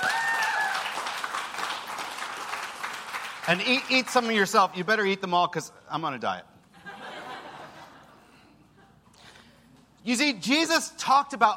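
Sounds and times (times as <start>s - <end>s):
audience clapping: 0.0s - 4.6s
speech: 3.5s - 6.5s, 10.0s - 11.5s
laughter: 6.7s - 9.3s.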